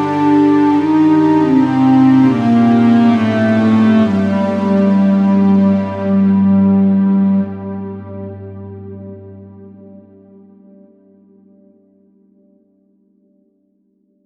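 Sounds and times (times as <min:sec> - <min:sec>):
folk music: 0:00.0 - 0:09.6.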